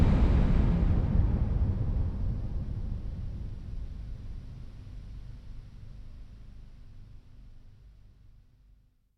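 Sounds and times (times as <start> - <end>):
suspense music: 0.0 - 5.5.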